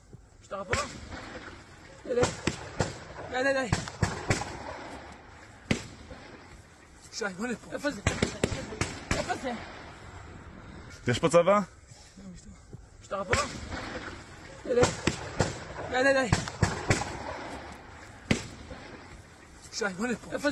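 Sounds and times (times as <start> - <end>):
speech: 0.5 - 4.0, 7.2 - 9.8, 11.1 - 11.8, 13.1 - 16.5, 19.8 - 20.5
gunfire during shooting incident: 0.7 - 6.6, 7.8 - 10.4, 13.2 - 19.4.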